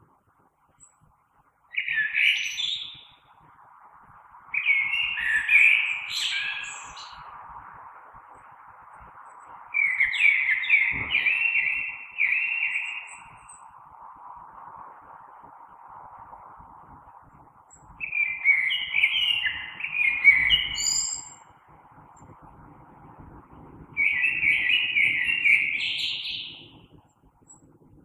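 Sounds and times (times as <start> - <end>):
steady background hum: 0.0 - 28.0
common blackbird song: 1.7 - 3.5, 4.5 - 13.8, 17.7 - 28.0.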